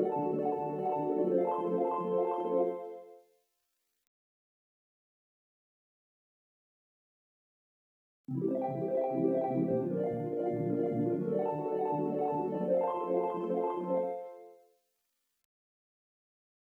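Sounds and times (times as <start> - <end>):
lead melody over backing: 0.0 - 2.9, 8.3 - 14.4.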